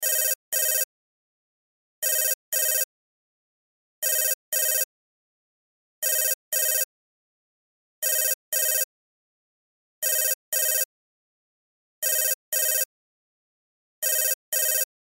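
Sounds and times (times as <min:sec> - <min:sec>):
cell phone ringtone: 0:00.0 - 0:00.9, 0:02.0 - 0:02.9, 0:04.0 - 0:04.9, 0:06.0 - 0:06.9, 0:08.0 - 0:08.9, 0:10.0 - 0:10.9, 0:12.0 - 0:12.9, 0:14.0 - 0:14.9.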